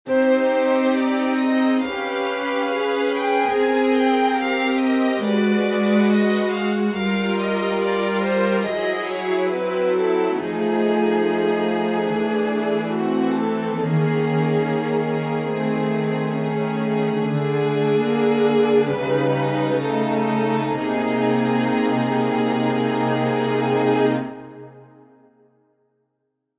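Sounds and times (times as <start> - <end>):
ensemble playing augmented sixth chord: 0.1 - 24.8.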